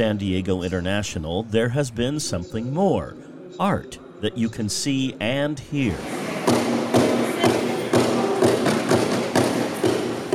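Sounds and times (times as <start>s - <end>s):
speech: 0.0s - 7.0s
dance drumming: 6.0s - 10.3s
dance stomping: 6.0s - 10.3s
tapping and rattling percussion: 6.5s - 10.3s.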